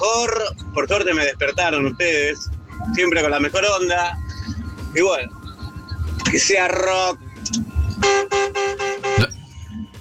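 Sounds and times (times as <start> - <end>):
speech: 0.2 - 4.2, 4.9 - 5.4, 6.3 - 8.4
car horns honking: 8.0 - 9.3.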